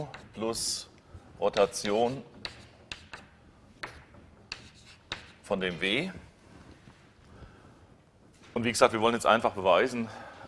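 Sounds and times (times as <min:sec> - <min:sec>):
speech: 0:00.0 - 0:02.6, 0:05.5 - 0:06.3, 0:08.6 - 0:10.4
writing strokes as an equation is written down: 0:01.4 - 0:05.6.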